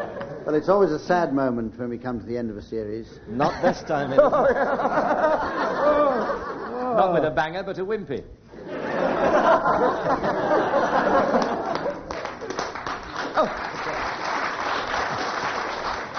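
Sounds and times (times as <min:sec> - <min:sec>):
laughter: 0:00.0 - 0:00.5, 0:03.4 - 0:07.2, 0:08.5 - 0:12.6
speech: 0:00.5 - 0:08.4, 0:09.2 - 0:11.5
audience applause: 0:10.2 - 0:16.1.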